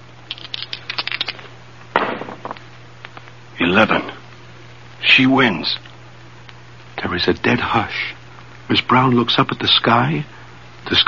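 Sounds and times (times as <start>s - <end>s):
dice being rolled: 0.3s - 1.4s, 2.0s - 2.6s
speech: 3.6s - 4.2s, 5.2s - 5.9s, 7.1s - 11.0s.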